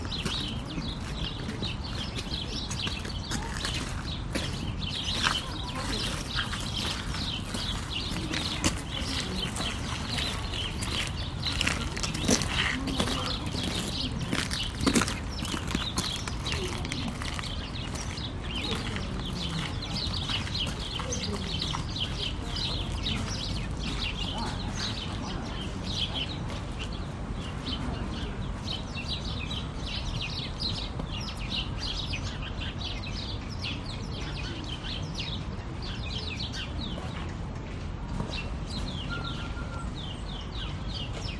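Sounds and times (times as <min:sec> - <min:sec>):
footsteps on gravel: 0:00.0 - 0:27.7
sparrows chirping in Skansen park in Stockholm: 0:00.0 - 0:37.4, 0:38.1 - 0:41.3
walla of voices: 0:00.0 - 0:41.0.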